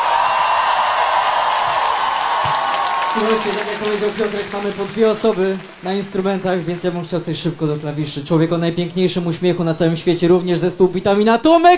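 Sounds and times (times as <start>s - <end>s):
audience applause: 0.0s - 9.2s
speech: 3.2s - 11.7s.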